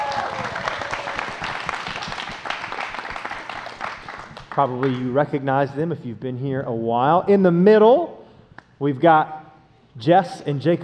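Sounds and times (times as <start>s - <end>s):
crowd applauding: 0.0s - 5.0s
speech: 4.6s - 8.2s, 8.8s - 9.4s, 10.0s - 10.8s.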